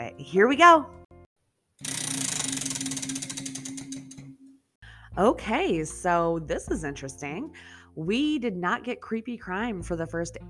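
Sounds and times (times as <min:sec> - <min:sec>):
speech: 0:00.1 - 0:01.0, 0:05.2 - 0:10.4
spinning prize wheel ticking: 0:01.8 - 0:04.2.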